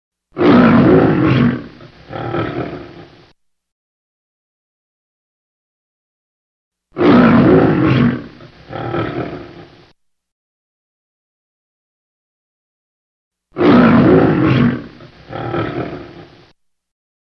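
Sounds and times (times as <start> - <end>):
lion roaring: 0.4 - 3.2, 7.0 - 9.9, 13.6 - 16.5.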